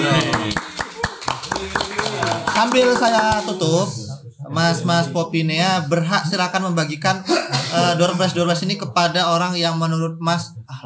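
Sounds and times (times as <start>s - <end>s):
hands clapping in a steady quick rhythm: 0.0s - 3.8s
speech: 2.6s - 10.8s.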